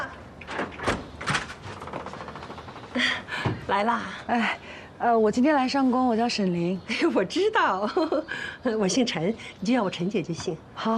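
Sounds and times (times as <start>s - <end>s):
door being opened by a nanny at her employer's home: 0.4s - 3.7s
speech: 3.0s - 10.9s.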